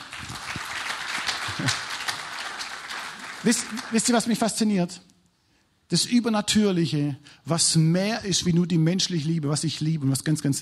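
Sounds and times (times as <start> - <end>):
applause: 0.0 - 4.5
speech: 1.6 - 1.8, 3.4 - 5.1, 5.9 - 10.5.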